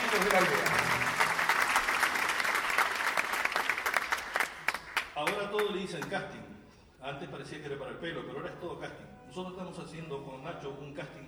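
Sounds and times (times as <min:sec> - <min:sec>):
audience applause: 0:00.0 - 0:05.8
speech: 0:00.2 - 0:01.0, 0:05.9 - 0:11.2.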